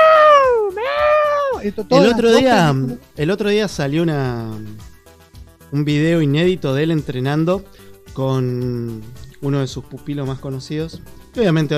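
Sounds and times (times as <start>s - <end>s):
man's voice imitating a cat-like martial arts battle scream: 0.0s - 2.6s
speech: 1.6s - 4.9s, 5.7s - 11.7s.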